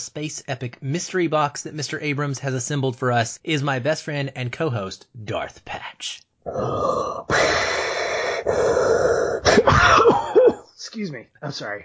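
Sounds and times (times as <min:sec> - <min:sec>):
speech: 0:00.0 - 0:10.1, 0:10.8 - 0:11.8
grunting throat sounds: 0:06.4 - 0:10.6
voice imitating Darth Vader's mechanical breathing: 0:06.5 - 0:09.9.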